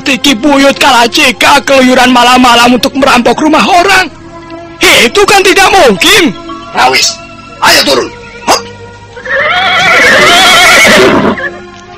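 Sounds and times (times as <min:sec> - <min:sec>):
speech: 0:00.1 - 0:04.2, 0:04.8 - 0:08.2
horse neighing: 0:08.4 - 0:11.6.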